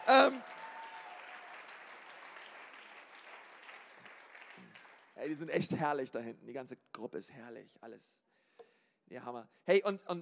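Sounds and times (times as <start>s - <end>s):
audience applause: 0.0s - 5.2s
speech: 0.1s - 0.5s, 5.2s - 8.3s, 9.1s - 10.1s.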